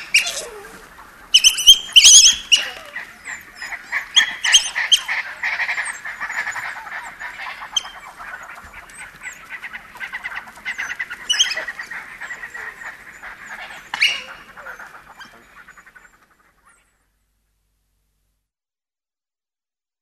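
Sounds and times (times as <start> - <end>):
African wild dog twittering calls: 0.0 - 17.0.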